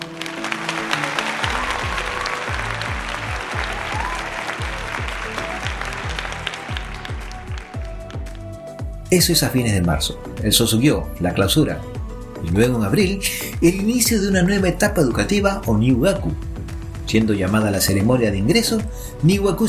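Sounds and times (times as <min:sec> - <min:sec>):
crowd applause: 0:00.0 - 0:08.4
low thumping music beats: 0:00.0 - 0:19.6
speech: 0:09.1 - 0:16.5, 0:17.1 - 0:19.6.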